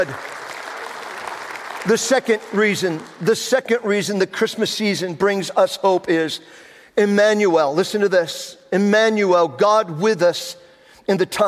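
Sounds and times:
speech: 0:00.0 - 0:00.3, 0:01.8 - 0:11.4
audience applause: 0:00.0 - 0:03.3.

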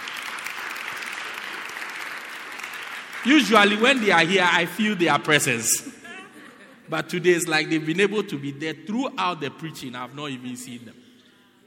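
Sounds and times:
audience applauding: 0:00.0 - 0:04.5
speech: 0:03.2 - 0:06.0, 0:06.9 - 0:11.0
laughter: 0:05.6 - 0:07.6.

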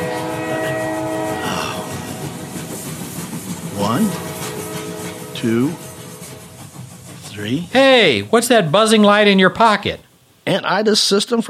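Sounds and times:
horn: 0:00.0 - 0:02.5, 0:03.7 - 0:06.6
speech: 0:05.4 - 0:05.8, 0:07.4 - 0:11.4.

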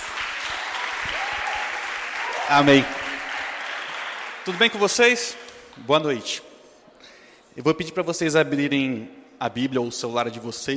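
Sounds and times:
applause: 0:00.0 - 0:05.5
speech: 0:02.5 - 0:03.0, 0:04.4 - 0:06.5, 0:07.6 - 0:10.7.

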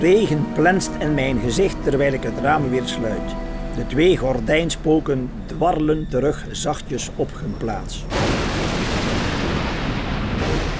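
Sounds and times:
speech: 0:00.0 - 0:08.4
thunderclaps: 0:08.1 - 0:10.7.

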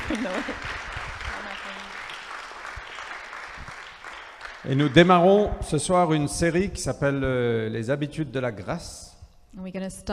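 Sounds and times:
laughter: 0:00.0 - 0:00.8
audience applause: 0:00.0 - 0:06.1
speech: 0:00.1 - 0:00.9, 0:04.6 - 0:10.1.

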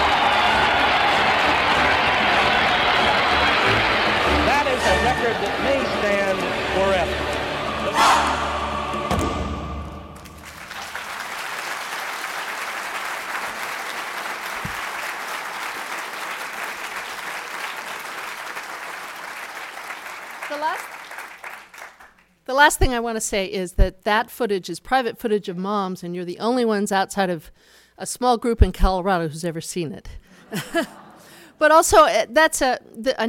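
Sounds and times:
racetrack crowd cheering and applauding: 0:00.0 - 0:22.2
speech: 0:05.2 - 0:07.3, 0:22.6 - 0:31.0, 0:31.6 - 0:33.2
laughter: 0:30.4 - 0:31.3.

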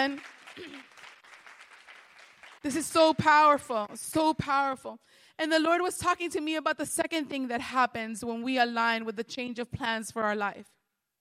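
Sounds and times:
speech: 0:00.0 - 0:00.9, 0:02.6 - 0:10.8
audience clapping hands: 0:00.0 - 0:04.3.

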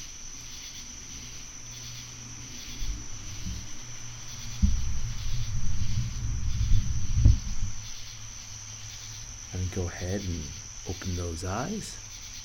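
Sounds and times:
low rumble: 0:00.0 - 0:10.8
crickets in a night forest: 0:00.0 - 0:12.4
thump: 0:02.9 - 0:03.8, 0:04.4 - 0:07.9
speech: 0:09.8 - 0:12.0.

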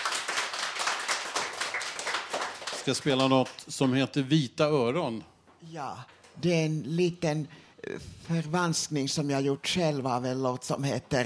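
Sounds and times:
group of people clapping: 0:00.0 - 0:04.2
speech: 0:02.8 - 0:11.2.

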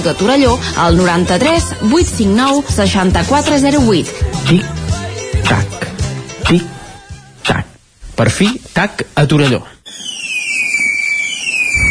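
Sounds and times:
speech: 0:00.0 - 0:04.8, 0:05.5 - 0:05.9, 0:06.5 - 0:06.8, 0:08.2 - 0:10.1
high whistling firework: 0:09.8 - 0:11.8.

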